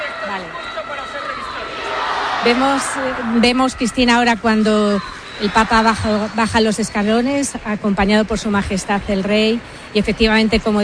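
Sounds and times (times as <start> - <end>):
crowd shouting: 0.0 - 6.8
speech: 2.4 - 10.8.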